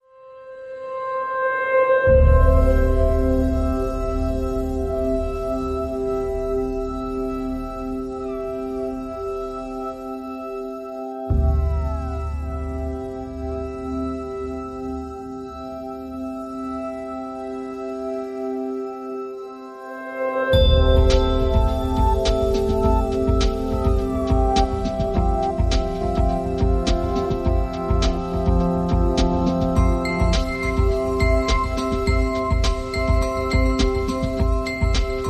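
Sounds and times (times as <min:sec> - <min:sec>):
synthesizers: 0:00.0 - 0:35.2
percussion: 0:02.0 - 0:35.2.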